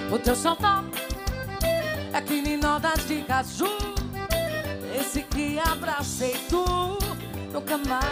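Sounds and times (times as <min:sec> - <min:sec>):
woman singing: 0:00.1 - 0:01.1, 0:02.1 - 0:04.2, 0:04.8 - 0:08.1.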